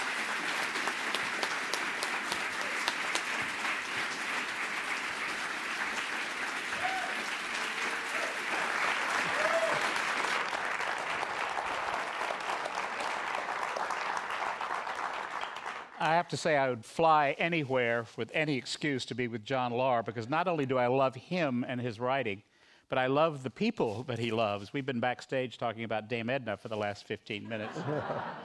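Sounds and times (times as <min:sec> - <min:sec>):
audience applauding two guests at an evening book event: 0:00.0 - 0:16.1
speech: 0:16.0 - 0:28.4
laughter: 0:27.4 - 0:28.4.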